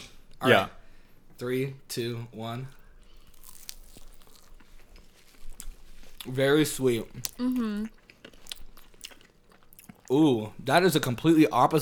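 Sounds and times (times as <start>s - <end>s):
speech: 0.4s - 0.8s, 1.4s - 2.8s, 6.2s - 8.0s, 10.1s - 11.7s
teeth biting into a barbecue-glazed chicken nugget: 3.0s - 10.2s.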